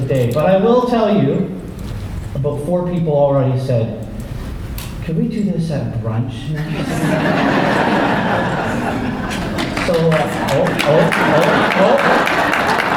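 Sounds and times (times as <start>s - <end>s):
speech: 0.1s - 1.6s, 2.3s - 4.0s, 5.0s - 12.6s
audience clapping: 6.7s - 12.9s.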